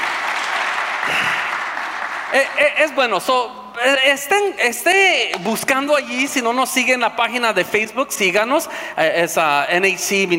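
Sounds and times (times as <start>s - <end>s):
Spanish-speaking church congregation applauding a sister: 0.0s - 3.3s
speech: 2.3s - 10.3s.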